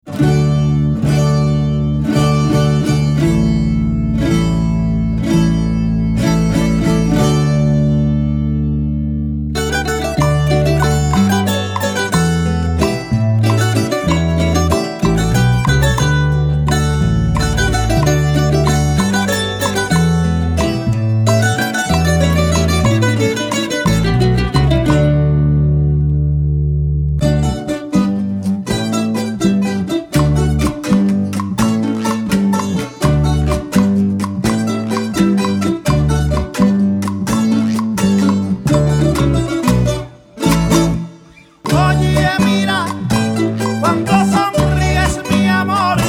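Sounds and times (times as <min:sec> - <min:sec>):
tonada folk song sung in rhythm: 0:00.0 - 0:46.0.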